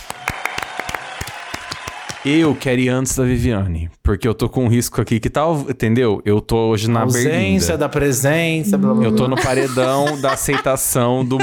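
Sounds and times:
audience applause: 0.0 - 2.7
speech: 2.2 - 11.4
laughter: 8.7 - 11.4.

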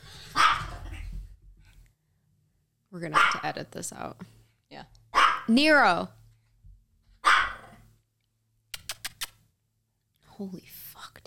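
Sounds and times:
dog barking at an airplane: 0.4 - 0.8, 3.1 - 3.5, 5.1 - 5.5, 7.2 - 7.8
speech: 3.0 - 4.4, 5.5 - 6.2, 10.4 - 11.2.

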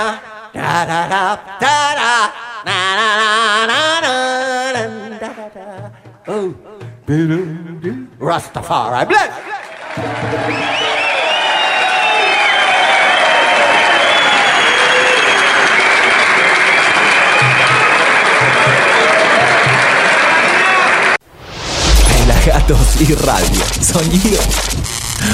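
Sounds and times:
speech: 0.0 - 10.8, 22.4 - 25.3
crowd applause at live concert: 9.6 - 21.2
whoops and whistles: 10.4 - 15.8.

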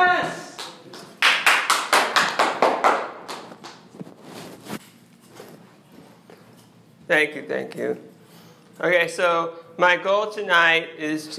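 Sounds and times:
audience clapping: 0.2 - 3.9
speech: 7.1 - 8.1, 8.8 - 11.3.

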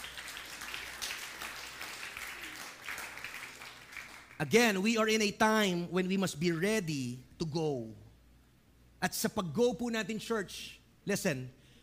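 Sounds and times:
church congregation applauding during a service: 0.0 - 4.8
speech: 4.4 - 8.0, 9.0 - 11.6.

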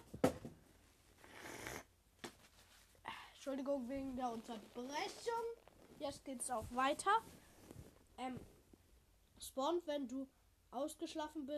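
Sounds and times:
nose blowing: 1.2 - 1.9
speech: 3.4 - 7.4, 8.2 - 8.5, 9.4 - 11.5.

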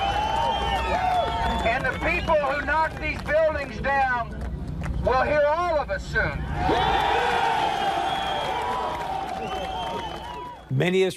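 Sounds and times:
crowd cheering at Ground Zero: 0.0 - 3.9, 6.3 - 10.7
speech: 1.8 - 4.4, 5.0 - 7.8, 10.7 - 11.1.

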